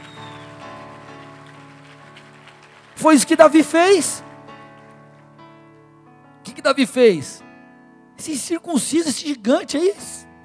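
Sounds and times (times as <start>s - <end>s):
audience applause: 0.0s - 5.3s
speech: 3.0s - 4.3s, 6.7s - 7.5s, 8.2s - 10.2s.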